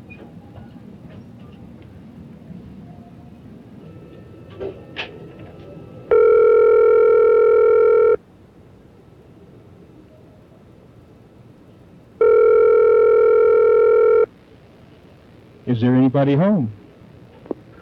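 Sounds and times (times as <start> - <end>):
telephone ringing tone while calling a shop that deals in gold: 3.8 - 8.2, 12.2 - 14.3
speech: 15.8 - 16.8.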